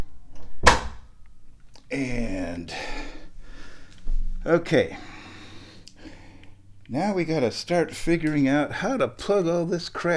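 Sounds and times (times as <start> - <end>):
door pushed shut: 0.4 - 1.1
speech: 1.9 - 3.0, 4.4 - 5.1, 6.9 - 10.1.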